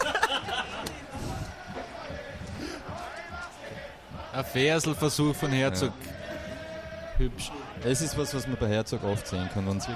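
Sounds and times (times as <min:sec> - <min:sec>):
laughter: 0:00.0 - 0:01.6
football fans cheering in a stadium: 0:00.0 - 0:09.9
speech: 0:04.4 - 0:06.1, 0:07.2 - 0:09.9.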